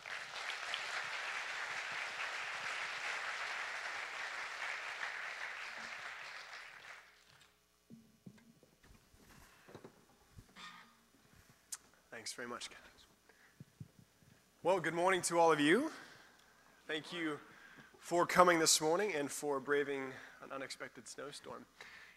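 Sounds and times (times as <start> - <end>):
audience applause welcoming speakers: 0.0 - 7.6
speech: 12.2 - 12.9, 14.6 - 16.0, 16.9 - 22.0.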